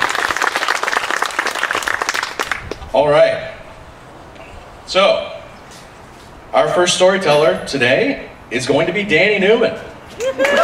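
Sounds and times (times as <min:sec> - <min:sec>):
audience applause: 0:00.0 - 0:02.8, 0:10.4 - 0:10.6
speech: 0:03.0 - 0:03.5, 0:04.9 - 0:05.3, 0:06.6 - 0:10.6.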